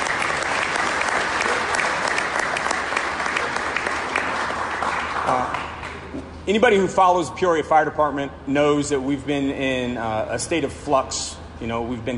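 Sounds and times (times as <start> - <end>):
audience applause: 0.0 - 6.1
speech: 6.5 - 12.1.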